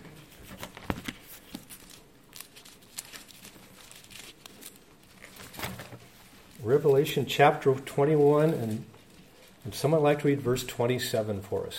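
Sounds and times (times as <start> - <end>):
Bible pages being turned: 0.0 - 9.9
speech: 6.6 - 8.9, 9.7 - 11.7.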